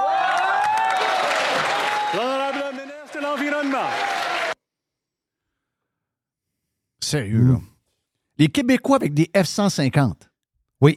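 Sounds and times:
applause in a parliamentary chamber: 0.0 - 4.6
speech: 7.1 - 7.7, 8.4 - 10.9.

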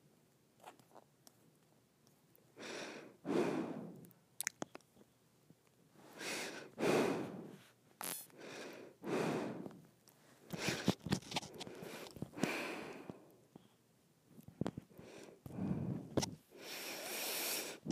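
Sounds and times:
breathing through the nose: 2.6 - 4.1, 6.0 - 7.7, 8.3 - 9.8, 10.5 - 13.3, 15.0 - 17.9.

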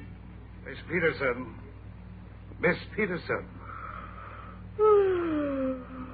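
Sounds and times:
speech: 0.9 - 1.7, 2.6 - 3.6
person yawning: 4.8 - 6.1.

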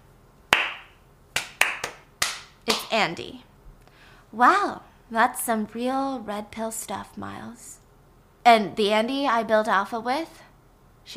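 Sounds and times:
slow hand claps: 0.5 - 2.9
speech: 2.9 - 3.5, 4.3 - 7.8, 8.4 - 10.4.

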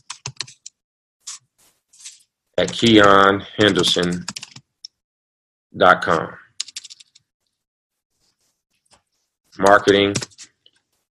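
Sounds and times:
keys clicking on a computer keyboard as an email address is typed: 0.0 - 0.8, 2.6 - 4.6, 6.6 - 7.2, 10.1 - 10.4
speech: 2.6 - 4.4, 5.8 - 6.4, 9.6 - 10.3.

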